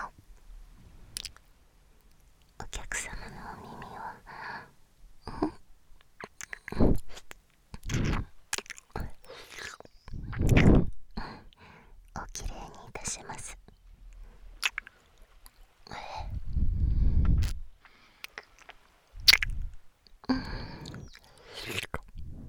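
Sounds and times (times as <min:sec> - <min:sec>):
ASMR ear licking sounds: 0:01.2 - 0:01.4, 0:06.1 - 0:11.7, 0:12.3 - 0:22.4.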